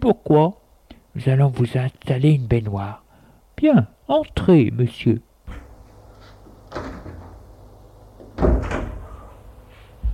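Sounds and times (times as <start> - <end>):
speech: 0.0 - 0.6, 1.2 - 3.0, 3.6 - 5.6
door being closed: 5.5 - 5.8, 6.6 - 7.6, 8.2 - 9.3.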